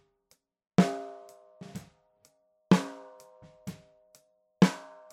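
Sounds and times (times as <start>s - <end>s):
snare drum recorded from the top in mono: 0.8s - 1.9s, 2.8s - 3.8s, 4.6s - 5.1s.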